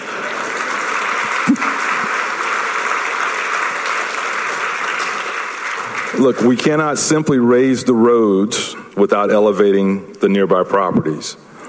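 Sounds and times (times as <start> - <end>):
audience clapping: 0.0 - 7.6
speech: 6.2 - 11.5.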